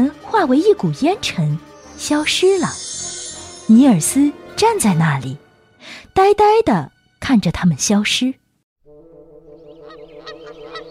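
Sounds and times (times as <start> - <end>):
steady tone: 0.3 - 5.6
speech: 0.4 - 2.9, 3.7 - 8.4
wild geese honking: 9.5 - 10.8.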